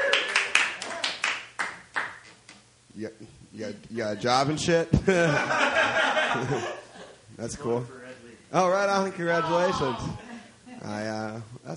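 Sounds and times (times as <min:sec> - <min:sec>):
audience applause: 0:00.0 - 0:02.1
speech: 0:03.0 - 0:06.8, 0:07.4 - 0:10.2, 0:10.8 - 0:11.7
laughter: 0:05.0 - 0:07.2.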